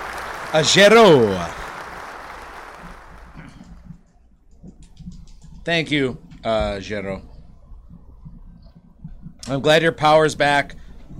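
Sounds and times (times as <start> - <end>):
played soundbite of crowd applause: 0.0 - 3.8
speech: 0.5 - 1.6, 5.6 - 7.3, 9.5 - 10.8.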